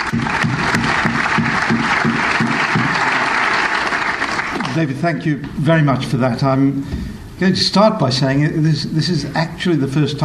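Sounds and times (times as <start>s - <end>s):
LSE audience applause welcoming a guest speaker: 0.0s - 4.8s
speech: 0.1s - 0.5s, 4.8s - 10.2s.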